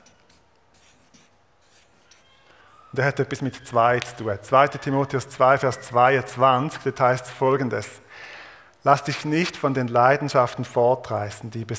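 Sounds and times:
writing a Bible verse on a board: 0.0 - 2.4
speech: 2.9 - 8.0, 8.8 - 11.7.

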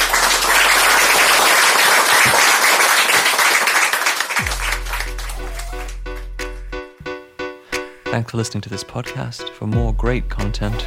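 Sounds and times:
crowd applauding: 0.0 - 6.3
speech: 8.2 - 10.8.

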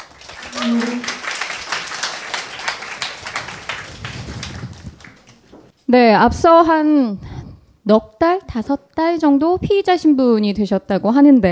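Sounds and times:
audience applause: 0.0 - 5.7
speech: 0.6 - 1.1, 5.9 - 7.3, 7.9 - 11.4.

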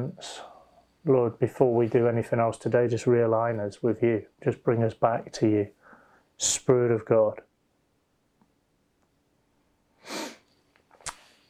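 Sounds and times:
speech: 0.0 - 5.8, 6.4 - 7.5
person sneezing: 10.0 - 10.5.

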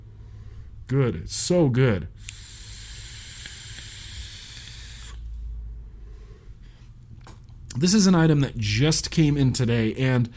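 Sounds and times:
speech: 0.9 - 2.4, 7.8 - 10.3
breath drawn through a vape: 2.2 - 6.9.

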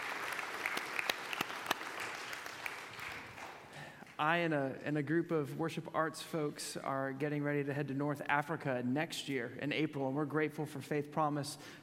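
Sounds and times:
audience clapping: 0.0 - 4.2
speech: 4.2 - 11.8.

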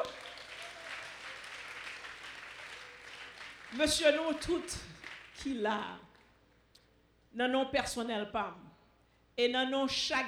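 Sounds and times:
audience applause: 0.0 - 4.4
speech: 3.7 - 6.1, 7.4 - 8.7, 9.4 - 10.2.

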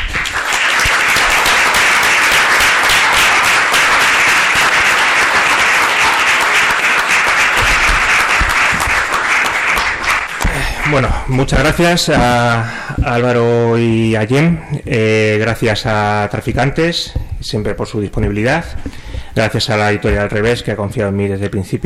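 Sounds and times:
audience applause: 0.0 - 12.3
speech: 10.9 - 21.8.

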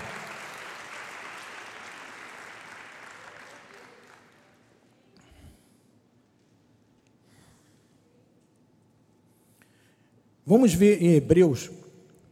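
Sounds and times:
audience applause: 0.0 - 4.8
speech: 10.5 - 11.8.

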